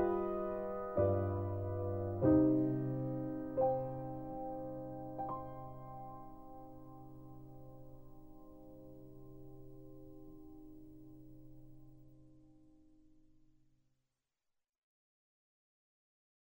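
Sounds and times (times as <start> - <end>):
solo piano: 0.0 - 12.9.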